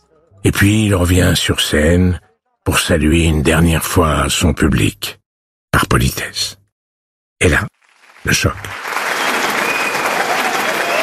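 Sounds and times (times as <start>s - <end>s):
speech: 0.4s - 5.2s, 5.8s - 6.6s, 7.4s - 8.9s
standing ovation with thunderous applause: 8.0s - 11.0s.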